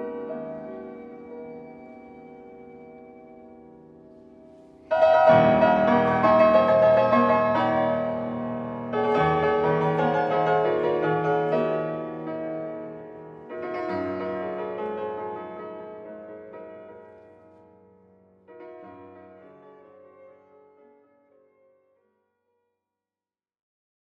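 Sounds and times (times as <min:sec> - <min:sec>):
violoncello playing an elegy: 0:00.0 - 0:17.1
piano: 0:00.0 - 0:22.2.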